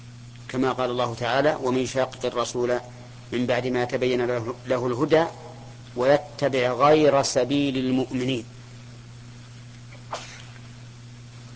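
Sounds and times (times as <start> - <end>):
faint electrical hum: 0.0 - 11.5
speech: 0.5 - 5.4, 6.0 - 8.6
sneeze: 9.9 - 10.7.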